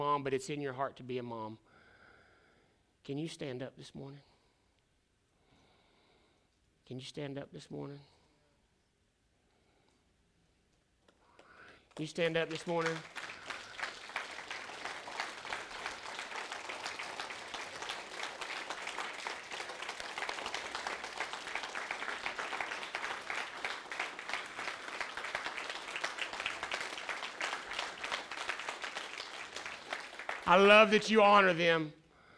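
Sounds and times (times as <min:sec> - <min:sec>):
speech: 0:00.2 - 0:01.7, 0:03.0 - 0:04.3, 0:06.9 - 0:08.1, 0:12.0 - 0:13.2, 0:30.5 - 0:32.0
audience clapping for standing mothers: 0:11.3 - 0:31.8.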